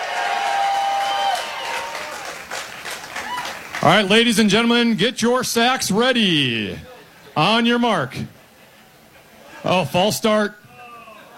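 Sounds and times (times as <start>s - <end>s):
crowd cheering and clapping: 0.0s - 4.6s
speech: 3.8s - 8.4s, 9.6s - 10.6s.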